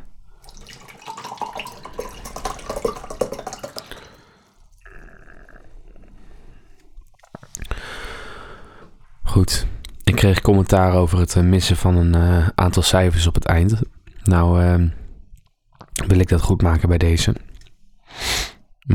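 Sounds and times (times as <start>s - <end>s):
drink pouring into a glass: 0.3s - 4.6s
speech: 9.4s - 15.0s, 16.1s - 17.4s.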